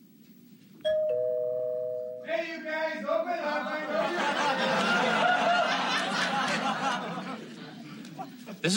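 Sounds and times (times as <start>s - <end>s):
two-note doorbell ding-dong: 0.8s - 2.3s
laughter: 3.4s - 8.7s
speech: 8.5s - 8.7s.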